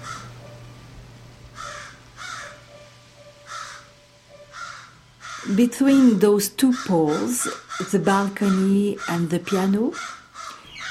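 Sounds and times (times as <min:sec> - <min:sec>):
raven cawing: 0:00.0 - 0:00.3, 0:01.6 - 0:02.7, 0:03.4 - 0:09.3, 0:09.9 - 0:10.8
speech: 0:05.4 - 0:10.2.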